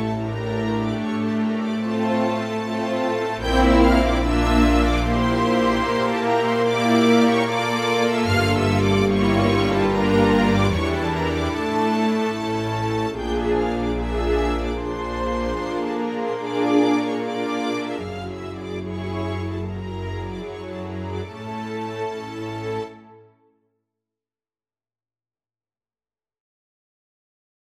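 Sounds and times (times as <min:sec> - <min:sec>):
string ensemble playing a folk dance: 0:00.0 - 0:23.1.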